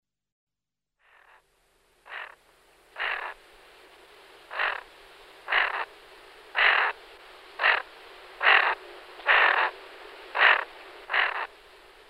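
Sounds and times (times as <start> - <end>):
greater scaup giving harsh rasping calls: 2.1 - 2.4, 3.0 - 3.4, 4.5 - 4.8, 5.5 - 5.9, 6.6 - 7.0, 7.6 - 9.7, 10.3 - 11.5.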